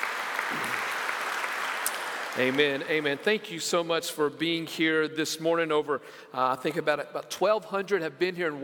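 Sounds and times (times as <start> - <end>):
audience applause: 0.0 - 3.4
speech: 2.4 - 8.6.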